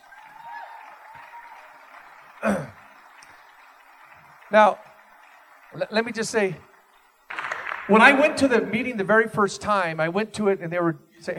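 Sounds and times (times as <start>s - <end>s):
audience applause: 0.0s - 8.7s
speech: 2.4s - 2.7s, 4.5s - 4.9s, 5.7s - 6.7s, 7.9s - 11.3s.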